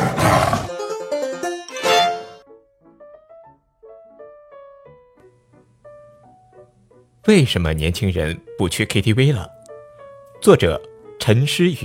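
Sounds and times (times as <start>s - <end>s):
tiger roar: 0.0s - 0.7s
speech: 7.2s - 9.6s, 10.4s - 11.8s.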